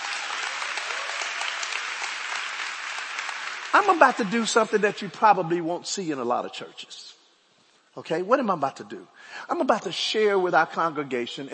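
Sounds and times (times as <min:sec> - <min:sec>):
crowd clapping for visitors: 0:00.0 - 0:04.8
speech: 0:03.7 - 0:07.2, 0:08.0 - 0:11.5.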